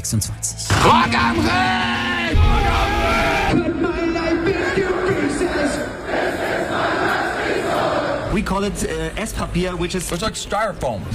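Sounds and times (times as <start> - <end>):
speech: 0.1 - 2.9, 3.5 - 6.3, 8.3 - 11.1
rock festival crowd cheering: 0.7 - 8.1.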